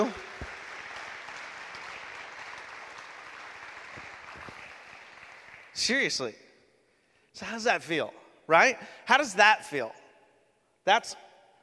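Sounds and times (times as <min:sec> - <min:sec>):
audience applause: 0:00.0 - 0:05.8
speech: 0:05.8 - 0:06.4, 0:07.4 - 0:10.0, 0:10.8 - 0:11.2.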